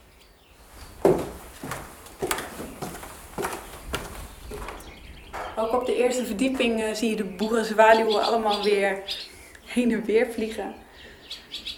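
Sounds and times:
footsteps climbing wooden stairs in a bird hide: 0.9 - 5.8
speech: 5.6 - 10.8.

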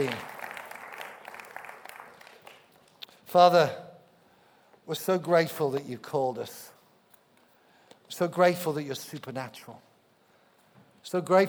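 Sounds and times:
speech: 0.0 - 0.3, 3.3 - 3.8, 4.9 - 6.7, 8.1 - 9.9, 11.0 - 11.4
audience applause for a church drama team: 0.0 - 2.7.

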